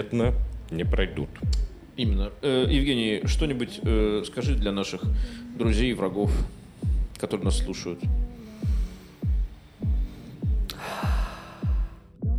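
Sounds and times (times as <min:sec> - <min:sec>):
speech: 0:00.0 - 0:06.6, 0:07.2 - 0:08.7
loud breathing into a microphone: 0:05.0 - 0:05.7, 0:06.3 - 0:07.2, 0:08.0 - 0:12.2.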